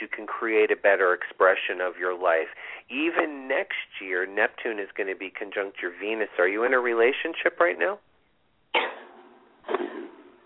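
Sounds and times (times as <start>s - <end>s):
speech: 0.2s - 8.1s
person sneezing: 8.7s - 10.4s.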